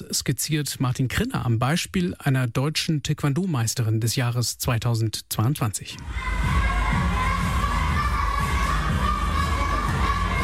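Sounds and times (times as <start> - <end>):
speech: 0.1 - 7.2
children shouting during taekwondo training: 6.0 - 10.4.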